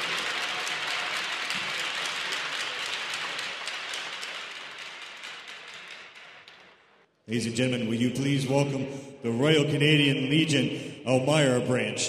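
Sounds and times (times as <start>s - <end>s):
crowd applause at a sports medal presentation: 0.0s - 6.9s
speech: 7.3s - 12.0s.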